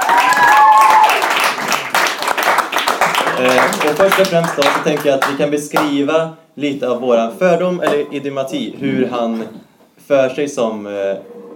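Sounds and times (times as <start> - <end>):
audience applause: 0.0 - 5.3
speech: 3.4 - 11.5.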